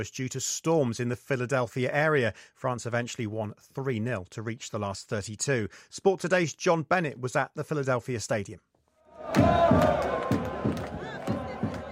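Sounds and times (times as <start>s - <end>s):
speech: 0.0s - 8.7s, 9.3s - 10.3s
Iraq football fans chanting at Philadelphia Stadium: 9.1s - 11.8s
Iraq football fans shouting and whooping: 9.2s - 11.8s
rhythmic thumps: 9.3s - 11.8s.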